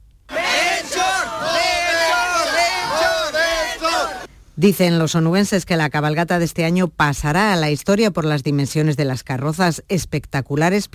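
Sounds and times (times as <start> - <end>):
parade crowd cheering: 0.3 - 4.3
speech: 4.6 - 10.9.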